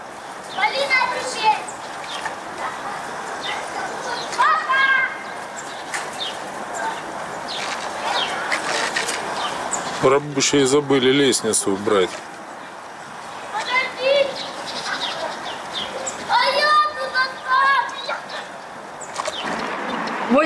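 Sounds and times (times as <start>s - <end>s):
children playing in a construction pit: 0.0s - 20.4s
speech: 10.0s - 12.4s.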